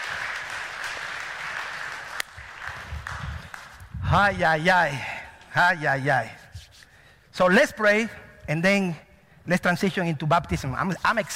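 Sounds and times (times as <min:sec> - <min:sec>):
audience clapping hands: 0:00.0 - 0:04.6
speech: 0:04.1 - 0:06.4, 0:07.4 - 0:11.3.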